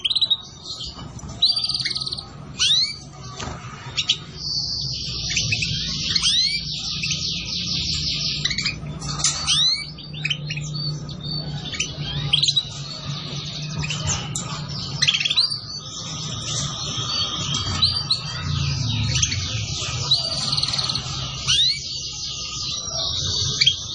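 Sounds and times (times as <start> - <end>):
Atlantic canary song: 0.0 - 23.9.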